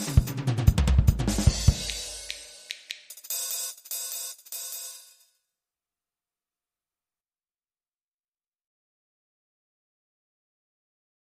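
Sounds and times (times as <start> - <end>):
bebop jazz loop: 0.0 - 4.5.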